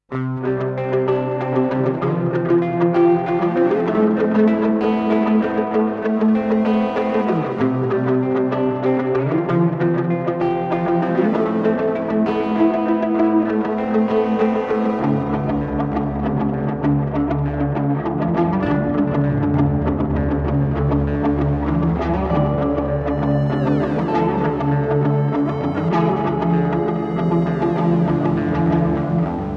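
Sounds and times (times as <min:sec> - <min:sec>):
overdriven guitar loop on Headrush Looperboard: 0:00.0 - 0:29.5.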